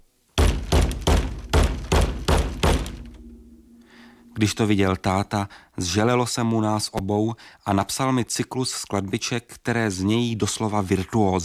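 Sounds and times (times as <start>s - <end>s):
plastic tub hitting a head: 0.4s - 3.1s
speech: 4.4s - 11.4s.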